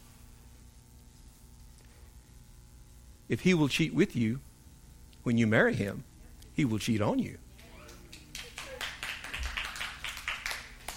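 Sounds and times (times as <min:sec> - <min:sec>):
speech: 0:03.3 - 0:04.5, 0:05.2 - 0:07.4
audience clapping: 0:07.6 - 0:10.9.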